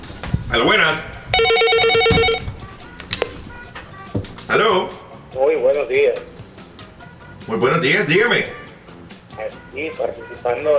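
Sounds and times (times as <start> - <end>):
speech: 0.5 - 1.5, 4.5 - 6.3, 7.5 - 8.6, 9.4 - 10.7
telephone ringing with an incoming call on a call-in show line: 1.4 - 2.5.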